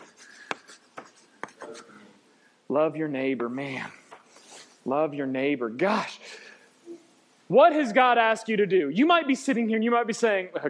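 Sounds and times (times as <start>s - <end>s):
handwriting scratching as the word narrow is written: 0.0s - 2.0s
speech: 2.7s - 4.0s, 4.8s - 6.2s, 7.5s - 10.6s.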